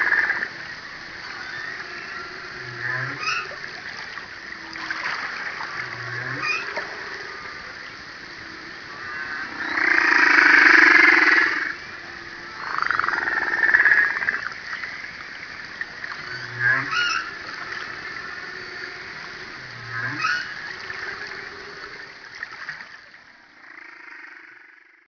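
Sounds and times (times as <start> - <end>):
humpback whale: 0.0 - 23.0.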